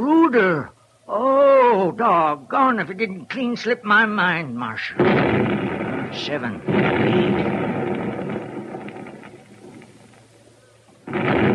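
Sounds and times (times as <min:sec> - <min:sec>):
speech: 0:00.3 - 0:07.7
explosive blasting charges going off in a mine shaft: 0:04.9 - 0:11.5.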